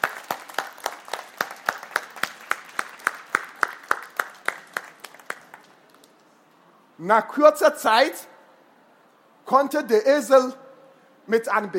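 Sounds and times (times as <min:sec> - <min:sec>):
applause: 0:00.0 - 0:06.2
speech: 0:07.0 - 0:08.3, 0:09.5 - 0:10.6, 0:11.2 - 0:11.7.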